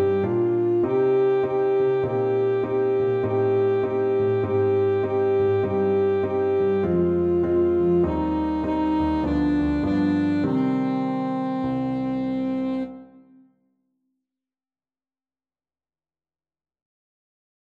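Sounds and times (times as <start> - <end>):
alto saxophone playing: 0.0 - 13.5.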